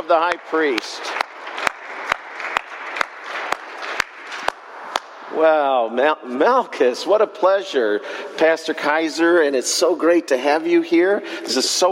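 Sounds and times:
audience applause welcoming a guest: 0.0s - 4.9s
speech: 0.1s - 1.2s, 5.4s - 11.9s.

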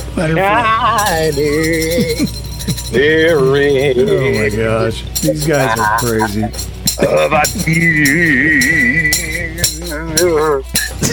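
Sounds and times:
laughter: 0.0s - 7.9s, 10.8s - 11.1s
speech: 0.2s - 11.1s
tambourine being shaken: 0.8s - 11.1s.

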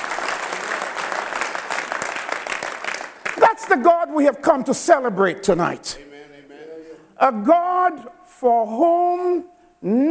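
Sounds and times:
audience clapping: 0.0s - 4.1s
speech: 3.7s - 6.1s, 7.2s - 10.0s.

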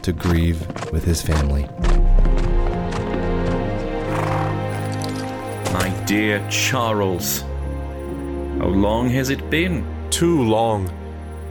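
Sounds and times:
speech: 0.0s - 2.5s, 5.7s - 7.5s, 8.6s - 11.0s
horse galloping with a rider on horseback: 0.0s - 6.2s
sustained tonal backdrop: 1.5s - 11.4s.

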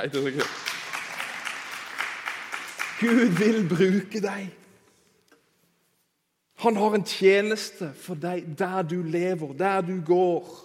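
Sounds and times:
speech: 0.0s - 0.7s, 3.0s - 4.6s, 6.6s - 10.6s
audience applause: 0.1s - 4.3s.

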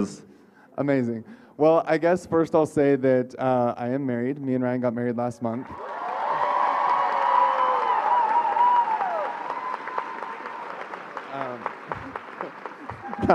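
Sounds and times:
speech: 0.0s - 5.9s
cheers and whoops: 5.7s - 11.3s, 12.9s - 13.3s
crowd applauding: 5.7s - 13.3s.

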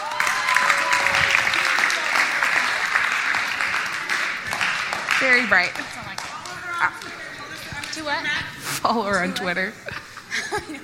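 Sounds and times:
audience applause: 0.0s - 7.9s
speech: 5.2s - 6.0s, 8.0s - 10.8s
laughter: 9.8s - 10.8s.

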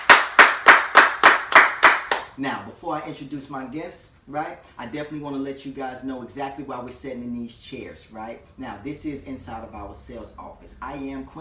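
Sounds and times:
hand claps: 0.0s - 2.3s
speech: 2.4s - 11.3s.

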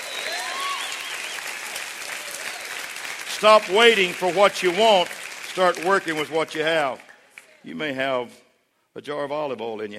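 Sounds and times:
audience clapping hands: 0.0s - 7.6s
speech: 3.4s - 8.4s, 9.0s - 9.9s.

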